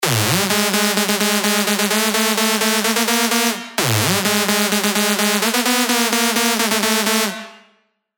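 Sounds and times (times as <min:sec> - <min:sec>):
dirty Dutch house synth leads: 0:00.0 - 0:07.6.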